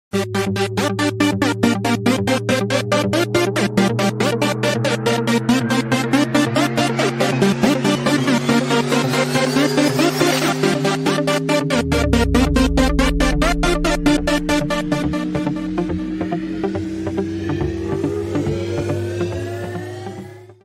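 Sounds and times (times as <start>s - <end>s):
rollercoaster synth: 0.1s - 20.6s.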